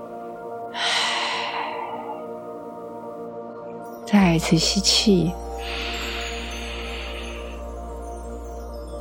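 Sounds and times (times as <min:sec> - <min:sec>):
slow long exhale during a breathing exercise: 0:00.7 - 0:02.4, 0:05.6 - 0:08.0
speech: 0:04.1 - 0:06.0.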